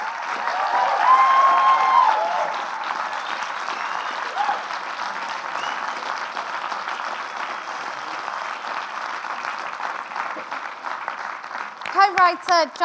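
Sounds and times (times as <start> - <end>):
audience applauding and cheering at a film magazine panel event: 0.0 - 12.8
whistle from the audience: 3.2 - 4.4, 5.6 - 6.0
speech: 12.3 - 12.8.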